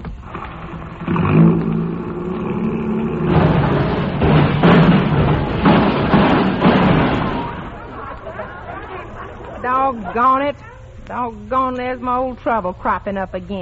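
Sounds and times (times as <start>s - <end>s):
car engine starting and revving as the car drives off: 0.2s - 7.7s
laughter: 5.1s - 10.6s
speech: 10.2s - 13.6s.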